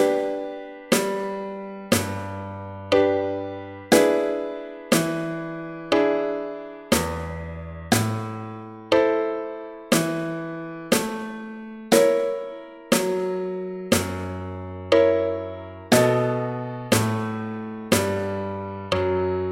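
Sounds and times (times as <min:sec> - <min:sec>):
piano: 0:00.0 - 0:19.4
snare drum: 0:00.9 - 0:01.3, 0:01.9 - 0:02.3, 0:04.9 - 0:05.3, 0:06.9 - 0:08.3, 0:09.9 - 0:10.3, 0:10.9 - 0:14.4, 0:16.9 - 0:18.4.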